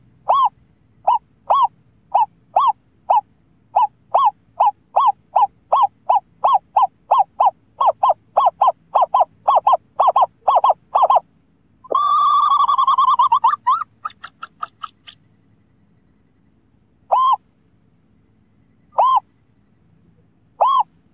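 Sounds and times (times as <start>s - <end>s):
scops owl hooting: 0.2s - 15.3s, 17.0s - 17.5s, 18.6s - 19.4s, 20.5s - 21.1s.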